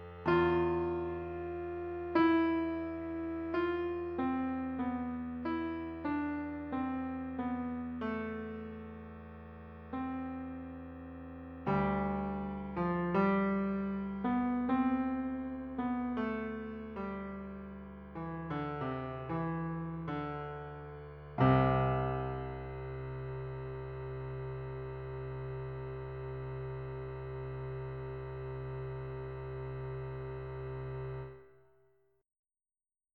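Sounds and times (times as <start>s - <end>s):
sad piano music: 0.0s - 31.4s.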